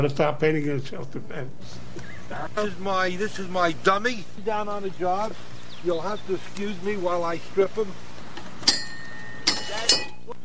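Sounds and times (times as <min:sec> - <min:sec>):
speech: 0:00.0 - 0:08.1
battleship quarterdeck ship's bell ringing: 0:08.7 - 0:10.3.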